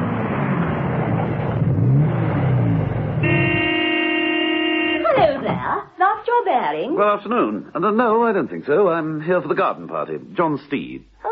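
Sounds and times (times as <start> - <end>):
car engine revving as it pulls up: 0.0 - 5.6
car horn blast: 3.2 - 5.4
speech: 6.6 - 11.1.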